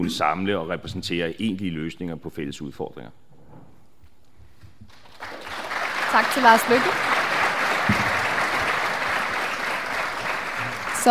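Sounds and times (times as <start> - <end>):
speech: 0.0 - 3.2, 6.1 - 7.1
steady audience applause: 4.9 - 11.0.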